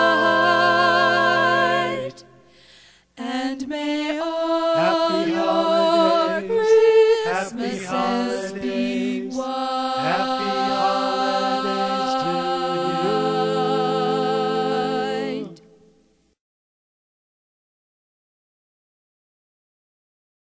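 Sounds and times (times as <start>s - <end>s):
Christmas carolers singing: 0.0s - 2.4s, 3.2s - 15.7s.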